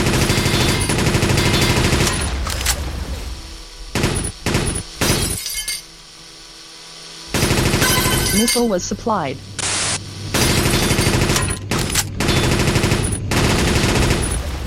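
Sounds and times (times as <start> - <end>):
machine gun fire in a video game: 0.0 - 2.5, 3.9 - 5.3, 7.3 - 8.4, 10.3 - 14.5
speech: 8.4 - 9.5.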